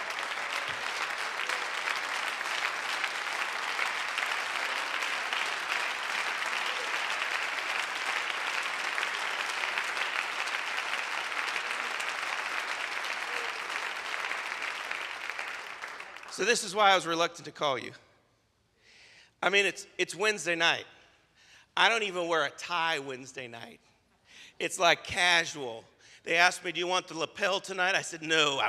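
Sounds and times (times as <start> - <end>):
audience clapping: 0.0 - 16.9
speech: 16.4 - 18.1, 19.4 - 20.9, 21.8 - 23.9, 24.6 - 28.6.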